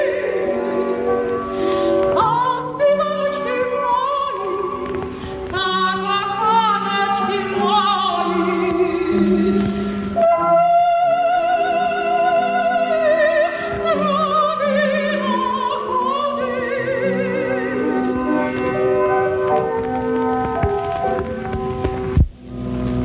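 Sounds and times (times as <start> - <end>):
Ukrainian traditional song: 0.0 - 23.0.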